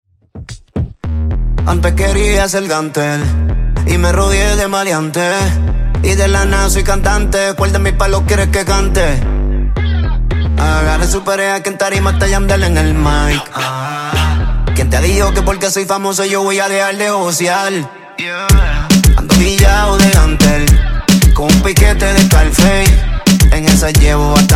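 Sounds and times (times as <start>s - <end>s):
Top 40 pop music at 110 bpm: 0.5s - 24.5s.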